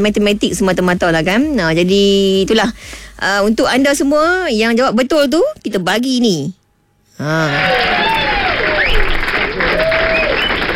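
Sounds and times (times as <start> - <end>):
speech: 0.0 - 6.6, 7.2 - 8.0
applause sound effect: 7.5 - 10.7.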